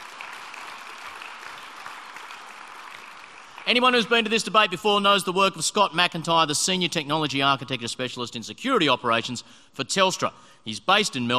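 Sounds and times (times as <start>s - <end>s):
audience applause: 0.0s - 4.3s
speech: 3.7s - 11.3s.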